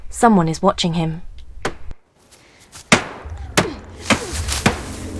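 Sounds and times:
speech: 0:00.1 - 0:01.3
stick hitting a car: 0:02.9 - 0:05.1.

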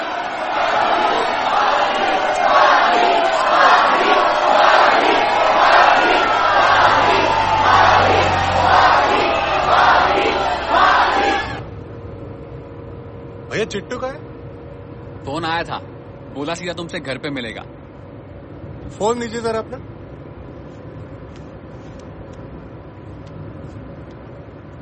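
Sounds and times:
crowd of fans and media outside chanting: 0:00.0 - 0:11.7
speech: 0:15.5 - 0:17.8, 0:18.9 - 0:19.9.

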